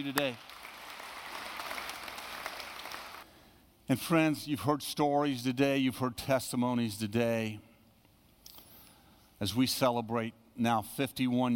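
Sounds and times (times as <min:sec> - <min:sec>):
speech: 0:00.0 - 0:00.6, 0:03.9 - 0:07.7, 0:09.4 - 0:11.5
audience clapping: 0:00.0 - 0:03.3.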